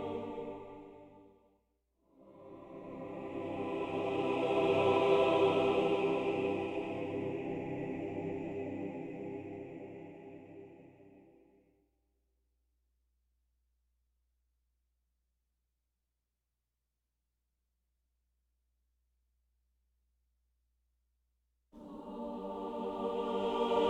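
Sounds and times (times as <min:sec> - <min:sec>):
choir singing: 0:00.0 - 0:01.3, 0:02.1 - 0:11.5, 0:21.8 - 0:23.8.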